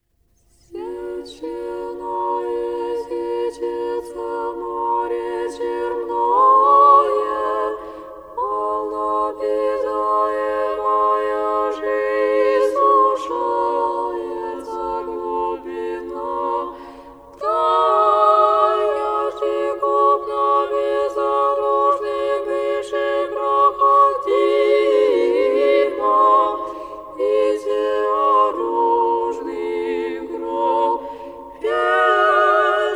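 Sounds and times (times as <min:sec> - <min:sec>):
liturgical chant: 0:00.5 - 0:32.9.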